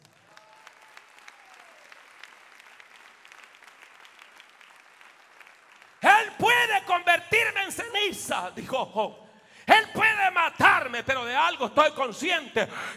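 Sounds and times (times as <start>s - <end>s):
audience applauding: 0.0s - 7.0s
speech: 6.3s - 12.9s.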